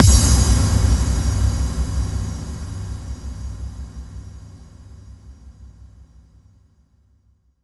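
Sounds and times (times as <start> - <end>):
bass drum FX kicks: 0.0 - 5.1.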